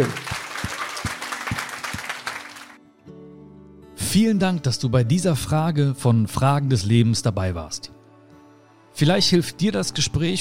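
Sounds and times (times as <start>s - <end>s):
speech: 0.0s - 0.2s, 4.1s - 8.0s, 9.0s - 10.3s
audience applause: 0.0s - 2.8s.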